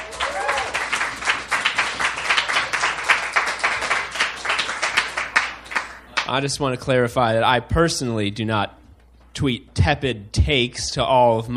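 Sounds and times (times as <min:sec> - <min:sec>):
person whooping: 0:00.0 - 0:00.9
audience applause: 0:00.0 - 0:06.3
speech: 0:06.3 - 0:08.8, 0:09.4 - 0:11.5.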